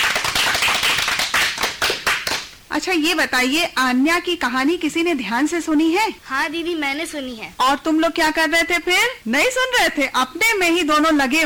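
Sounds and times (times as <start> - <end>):
loud clapping: 0.0 - 2.6
speech: 2.8 - 11.4.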